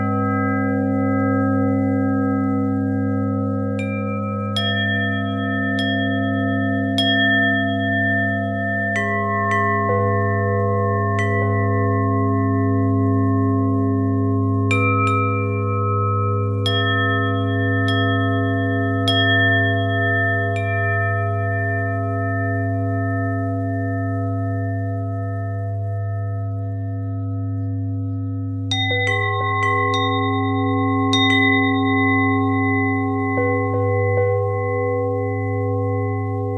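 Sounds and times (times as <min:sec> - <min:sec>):
bells with harmonic twist: 0:00.0 - 0:36.5.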